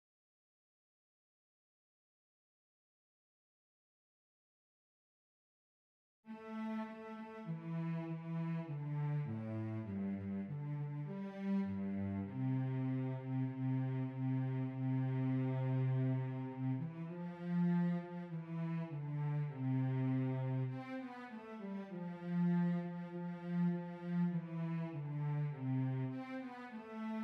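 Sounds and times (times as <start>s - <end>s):
cello: 6.3s - 27.2s.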